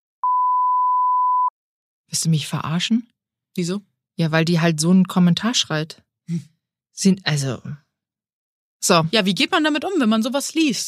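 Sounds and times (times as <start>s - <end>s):
censor bleep over a name: 0.2s - 1.5s
speech: 2.1s - 7.8s, 8.8s - 10.8s.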